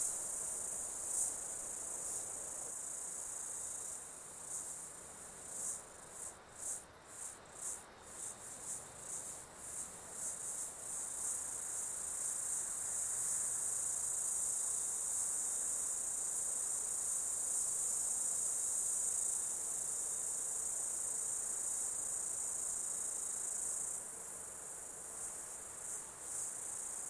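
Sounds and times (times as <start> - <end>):
insects droning: 0.0 - 27.0.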